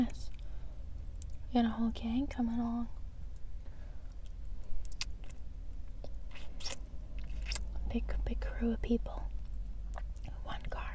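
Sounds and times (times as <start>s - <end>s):
steady low rumble: 0.0s - 10.9s
speech: 1.5s - 3.0s, 7.9s - 9.3s
wet crunchy chewing of food in mukbang eating: 4.1s - 7.8s.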